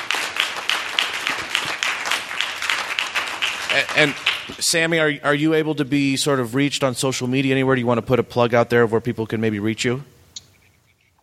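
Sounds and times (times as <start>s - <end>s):
room full of people applauding: 0.0s - 4.9s
speech: 3.8s - 10.2s.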